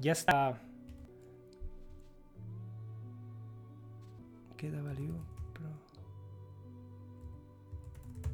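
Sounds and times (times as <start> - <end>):
person speaking: 0.0 - 0.8, 4.5 - 6.0
typing on a computer keyboard: 4.9 - 5.7, 7.2 - 8.3.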